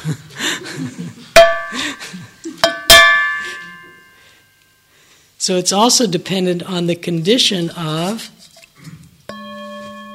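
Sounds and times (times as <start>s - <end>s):
speech: 0.0s - 2.0s, 5.5s - 8.4s
bowl struck like a bell: 1.4s - 1.9s, 2.6s - 4.2s, 9.3s - 10.1s.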